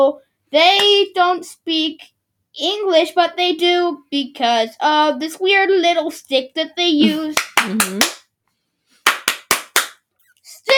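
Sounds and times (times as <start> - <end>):
speech: 0.0 - 8.2
hand clapping: 7.1 - 8.3, 9.0 - 10.1.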